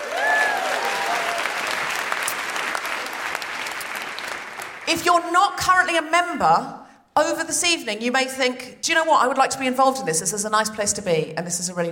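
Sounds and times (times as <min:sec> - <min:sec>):
audience applause: 0:00.0 - 0:04.9
speech: 0:04.9 - 0:11.9.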